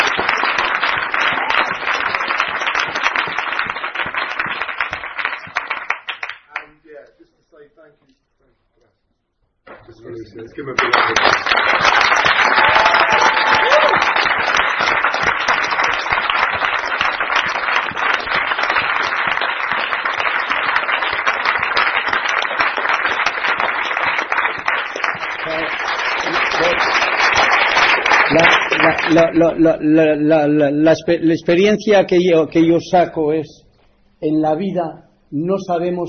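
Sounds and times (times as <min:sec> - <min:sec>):
big round of applause: 0:00.0 - 0:06.8, 0:10.6 - 0:29.4
speech: 0:10.4 - 0:11.6, 0:29.1 - 0:33.6, 0:34.2 - 0:36.0.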